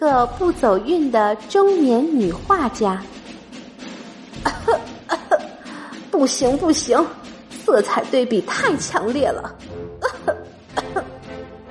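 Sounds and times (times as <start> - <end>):
speech: 0.0 - 3.2, 6.2 - 9.7
laughter: 4.5 - 5.6, 10.0 - 11.2
loud coughing: 10.0 - 11.2.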